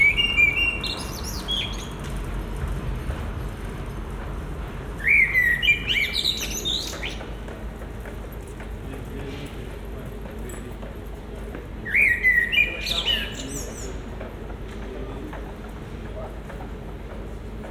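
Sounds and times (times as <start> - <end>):
common blackbird song by a residence building in Brussels: 0.0 - 3.2, 4.0 - 7.5, 11.8 - 14.2.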